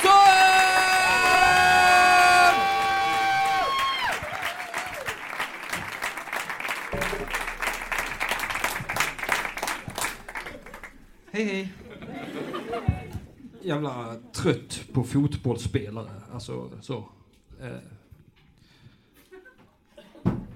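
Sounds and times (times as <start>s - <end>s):
audience cheering and whoops: 0.0s - 5.2s
loud audience applause: 0.0s - 11.3s
laughter: 11.6s - 13.6s
speech: 13.8s - 18.0s.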